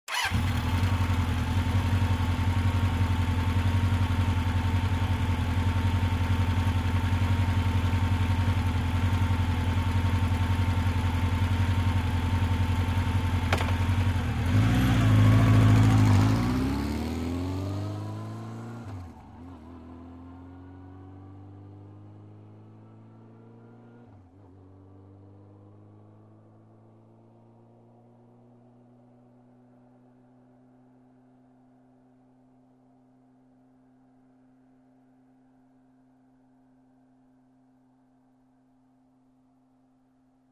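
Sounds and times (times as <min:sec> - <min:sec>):
motorcycle starting, idling and driving away: 0:00.1 - 0:27.8.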